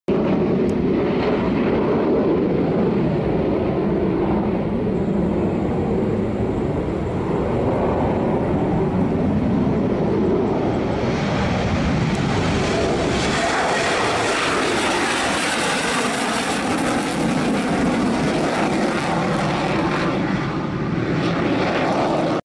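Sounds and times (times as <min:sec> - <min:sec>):
Sukhoi Su-75 jet aircraft: 0:00.1 - 0:22.4.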